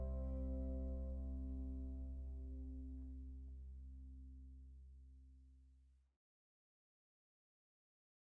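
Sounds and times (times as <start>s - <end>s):
minor chord progression: 0.0s - 3.4s.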